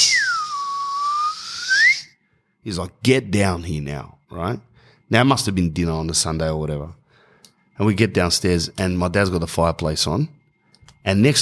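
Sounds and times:
person whistling a summoning call: 0.0s - 2.3s
speech: 2.6s - 7.0s, 7.8s - 10.4s, 11.0s - 11.4s.

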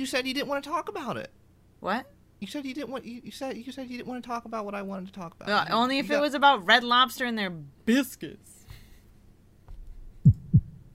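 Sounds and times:
speech: 0.0s - 8.6s
heartbeat: 9.7s - 10.9s.

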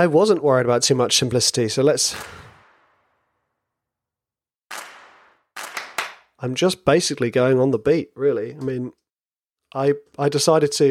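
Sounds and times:
speech: 0.0s - 2.4s, 6.4s - 9.0s, 9.7s - 10.9s
simple hand clapping pattern: 4.7s - 6.4s.

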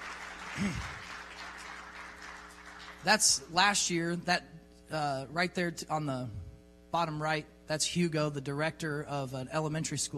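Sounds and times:
audience clapping: 0.0s - 3.4s
speech: 0.6s - 1.0s, 3.0s - 10.1s.

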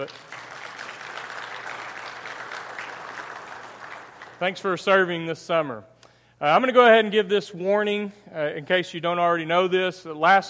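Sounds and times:
speech: 0.0s - 0.4s, 4.4s - 10.4s
congregation clapping at a Sunday morning church service: 0.0s - 5.1s.

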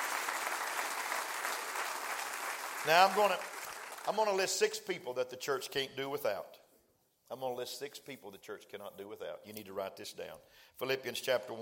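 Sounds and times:
crowd applauding: 0.0s - 4.4s
speech: 2.8s - 6.6s, 7.3s - 11.6s.

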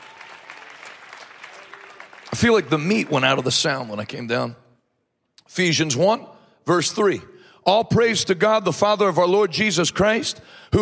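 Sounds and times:
auditorium audience clapping: 0.0s - 4.4s
speech: 2.3s - 4.6s, 5.6s - 10.8s.

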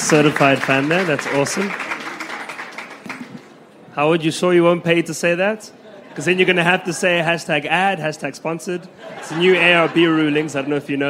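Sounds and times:
audience applause: 0.0s - 3.5s
speech: 0.1s - 1.9s, 4.0s - 11.0s
laughter: 5.7s - 7.8s, 8.8s - 11.0s.

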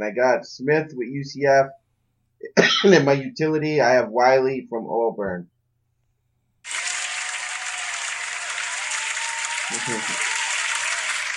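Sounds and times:
speech: 0.0s - 1.8s, 2.4s - 5.5s, 9.7s - 10.2s
studio audience applause: 6.7s - 11.3s.

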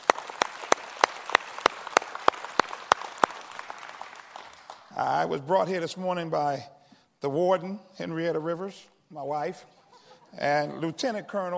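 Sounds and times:
audience clapping hands in praise: 0.0s - 5.3s
speech: 5.0s - 9.7s, 10.3s - 11.5s.

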